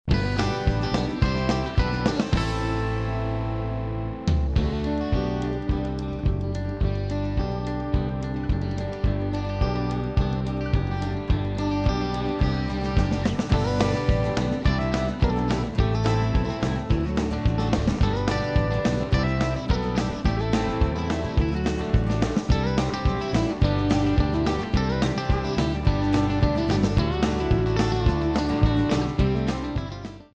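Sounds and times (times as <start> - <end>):
country music: 0.0 - 30.3.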